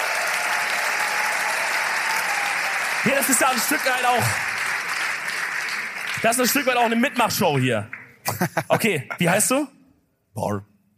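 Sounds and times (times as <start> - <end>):
audience applause at a live interactive stage show: 0.0 - 8.1
speech: 3.1 - 4.5, 6.2 - 9.8, 10.4 - 10.7
laughter: 8.2 - 9.3.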